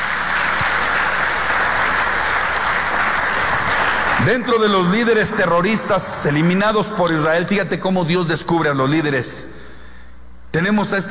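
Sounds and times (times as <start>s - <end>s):
audience applause: 0.0s - 4.8s
speech: 4.2s - 9.6s, 10.5s - 11.1s.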